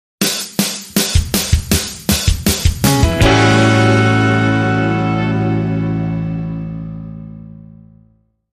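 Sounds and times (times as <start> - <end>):
Motown-style one-chord soul groove: 1.0 - 7.6.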